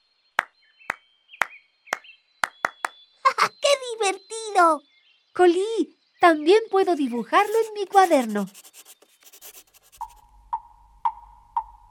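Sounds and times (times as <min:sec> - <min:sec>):
hand claps imitating woodpecker pecking: 0:00.4 - 0:03.0
speech: 0:04.0 - 0:08.8.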